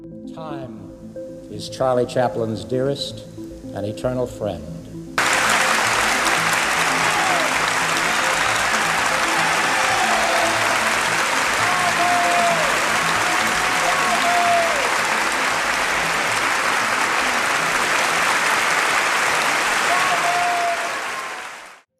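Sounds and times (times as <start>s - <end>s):
speech: 0.4s - 4.8s
long sustained audience applause: 5.2s - 21.9s.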